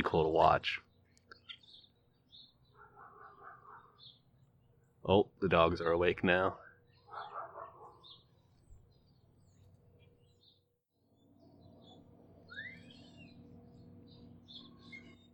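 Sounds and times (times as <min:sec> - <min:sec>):
speech: 0:00.1 - 0:00.9, 0:05.0 - 0:06.6
starlings chirping and whistling: 0:01.3 - 0:05.0, 0:06.7 - 0:10.6, 0:11.2 - 0:15.3.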